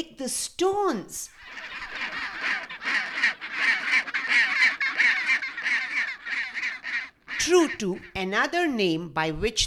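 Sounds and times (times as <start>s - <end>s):
speech: 0.0s - 2.1s, 7.4s - 9.6s
chinstrap penguin colony harsh screeching calls: 1.4s - 8.2s.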